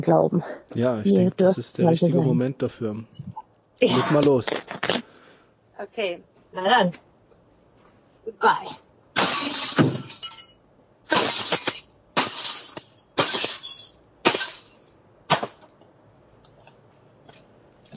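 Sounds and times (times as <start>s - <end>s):
speech: 0.0s - 3.2s, 3.8s - 5.0s, 5.8s - 7.1s, 8.3s - 8.8s
something smashed with a baseball bat: 9.2s - 10.5s, 11.1s - 15.8s
glass breaking: 9.2s - 15.8s.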